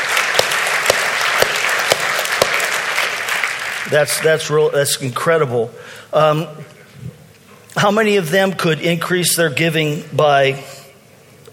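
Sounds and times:
audience applause: 0.0s - 4.4s
speech: 3.9s - 6.8s, 7.8s - 10.7s.

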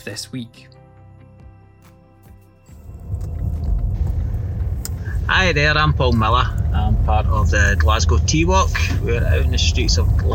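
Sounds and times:
speech: 0.0s - 0.8s, 5.3s - 10.3s
car driving through Merchant City streets of Glasgow at night: 2.7s - 10.3s.

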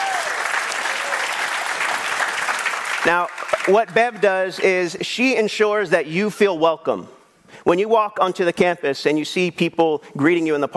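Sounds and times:
church audience applause: 0.0s - 4.0s
speech: 3.0s - 10.7s.

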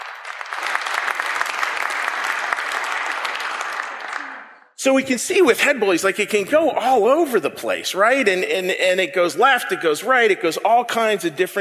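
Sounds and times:
crowd applauding: 0.0s - 4.8s
speech: 4.8s - 11.6s.

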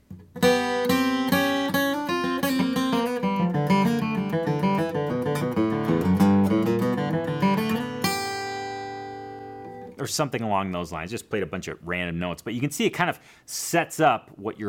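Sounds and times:
guitar double stops as an intro to a solo: 0.1s - 10.0s
speech: 10.2s - 14.6s.

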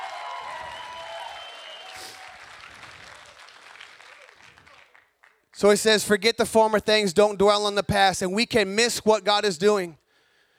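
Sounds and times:
cheers and whistles: 0.0s - 5.0s
audience clapping and applauding: 0.0s - 5.8s
speech: 5.6s - 10.0s.

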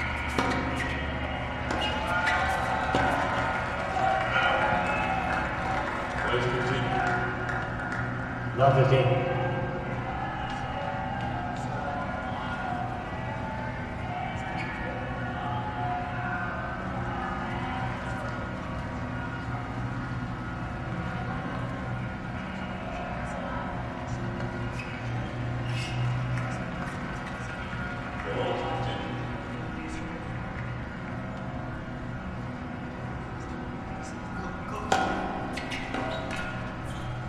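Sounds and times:
low continuous hum: 0.0s - 37.2s
murmur of voices at the US Open tennis tournament in New York: 0.0s - 37.2s.

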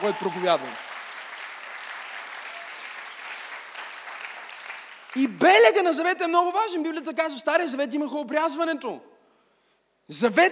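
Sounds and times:
speech: 0.0s - 0.9s, 5.2s - 9.1s, 10.1s - 10.4s
audience applause: 0.0s - 5.3s.

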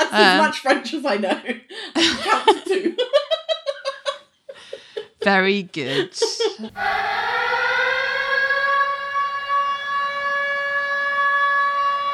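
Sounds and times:
laughter: 0.0s - 6.8s
speech: 0.1s - 3.3s, 5.2s - 7.2s
alarm siren: 6.8s - 12.1s.

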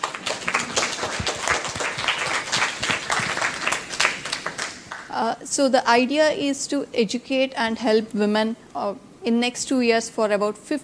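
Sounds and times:
round of applause: 0.0s - 5.1s
speech: 5.2s - 10.8s.

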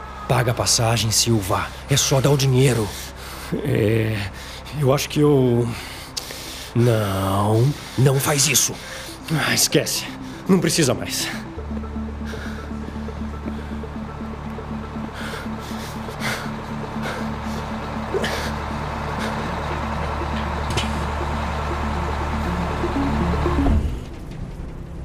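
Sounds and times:
bus engine drone: 0.0s - 25.0s
road rumble: 0.0s - 25.0s
speech: 0.3s - 6.0s, 6.8s - 11.4s.

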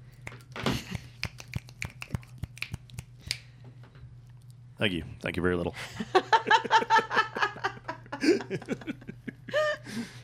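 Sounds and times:
applause by snapping fingers: 0.1s - 3.5s
speech: 4.8s - 7.3s, 8.2s - 9.1s
laughter: 5.8s - 10.1s.

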